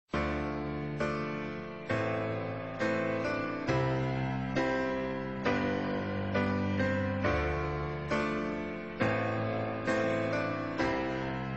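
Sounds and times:
piano: 0:00.1 - 0:11.5.

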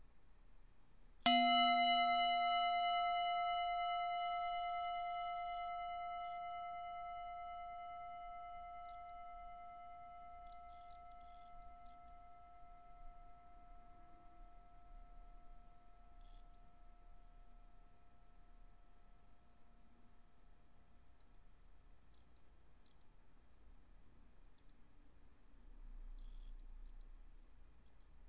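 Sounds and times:
singing bowl: 0:01.3 - 0:20.4.

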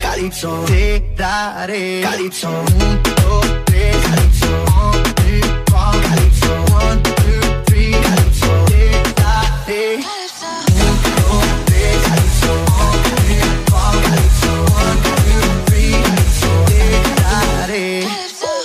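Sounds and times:
remix music: 0:00.0 - 0:18.6.

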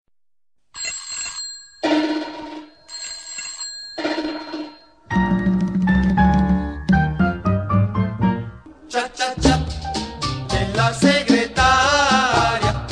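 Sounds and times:
cha cha cha music: 0:05.1 - 0:12.8.

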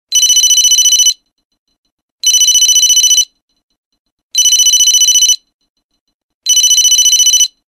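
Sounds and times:
digital ringtone: 0:00.1 - 0:01.4, 0:02.2 - 0:03.6, 0:04.4 - 0:05.7, 0:06.5 - 0:07.6.

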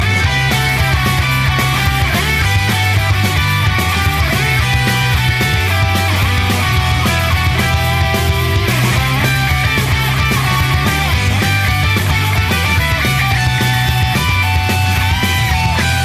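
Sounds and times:
bass guitar: 0:00.0 - 0:16.0.

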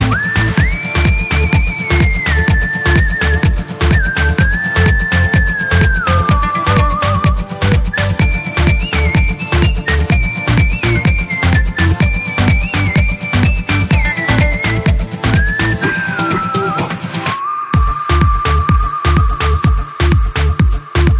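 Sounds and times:
whistle: 0:00.0 - 0:21.1.

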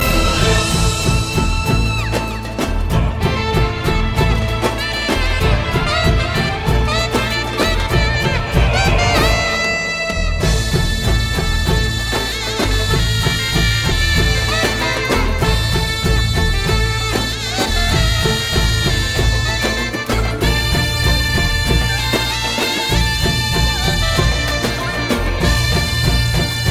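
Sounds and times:
fight music: 0:00.0 - 0:26.6.

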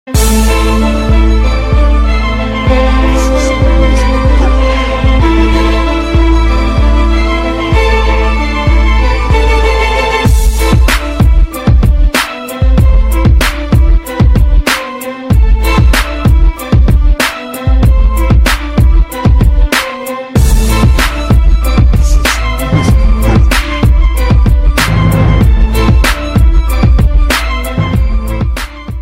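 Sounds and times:
hard orchestral beats: 0:00.1 - 0:29.0.

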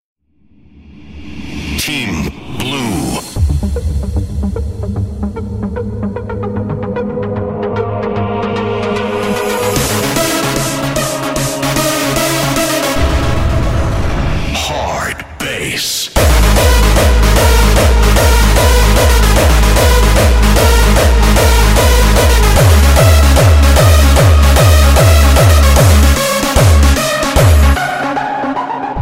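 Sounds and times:
hardbass music: 0:03.2 - 0:14.8, 0:16.2 - 0:29.0.

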